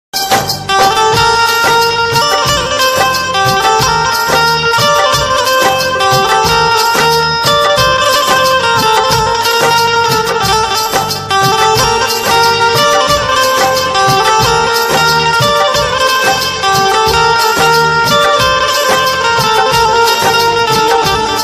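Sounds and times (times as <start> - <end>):
Hindi instrumental ringtone music: 0.2 - 21.4.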